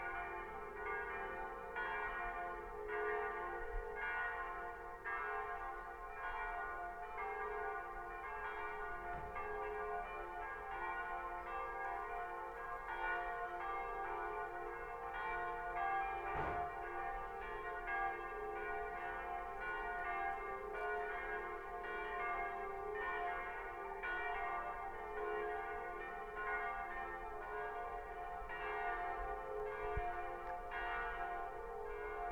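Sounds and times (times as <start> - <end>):
Sunday church bells ringing: 0.0 - 32.2.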